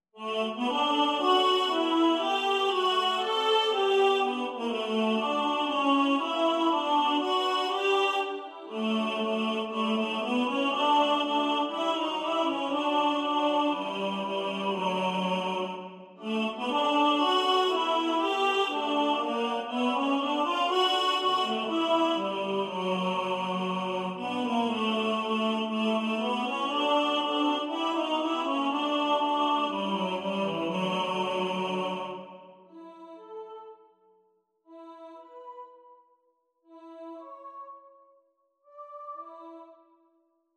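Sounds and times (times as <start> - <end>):
tenor singing: 0.2 - 32.4.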